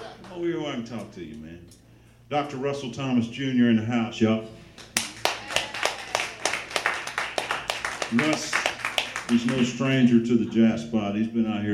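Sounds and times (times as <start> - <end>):
speech: 0.4 - 4.9, 8.1 - 8.6, 9.3 - 11.7
audience clapping for a guest on a jazz show: 4.8 - 10.1.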